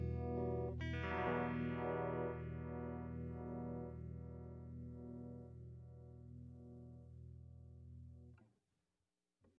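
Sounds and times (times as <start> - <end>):
stereo phasor sine tone: 0.1 - 6.5.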